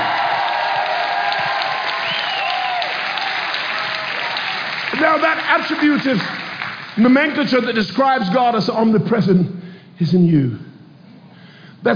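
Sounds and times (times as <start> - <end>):
audience clapping and cheering: 0.0 - 7.6
speech: 5.0 - 6.4, 7.0 - 10.7.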